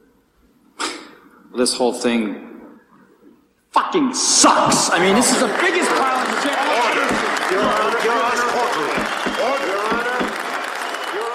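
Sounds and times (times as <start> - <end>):
speech: 1.5 - 2.5, 3.9 - 9.9
crowd applauding and cheering: 4.8 - 11.3.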